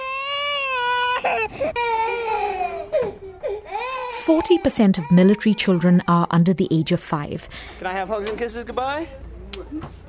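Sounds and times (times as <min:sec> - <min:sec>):
babies crying: 0:00.0 - 0:06.2
speech: 0:01.2 - 0:03.1, 0:04.2 - 0:10.0.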